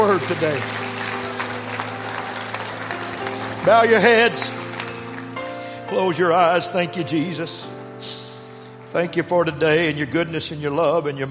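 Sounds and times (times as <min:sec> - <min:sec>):
audience clapping: 0:00.0 - 0:06.8
speech: 0:00.1 - 0:01.0, 0:03.6 - 0:04.6, 0:05.9 - 0:08.2, 0:08.9 - 0:11.2.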